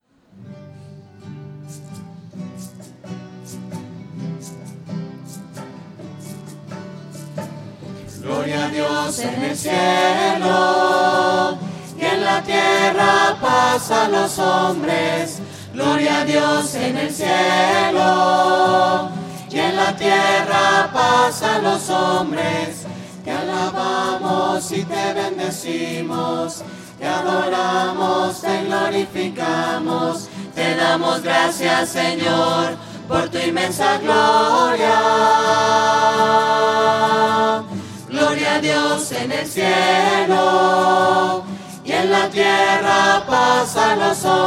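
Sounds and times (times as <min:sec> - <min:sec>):
voices singing: 0:08.0 - 0:44.4.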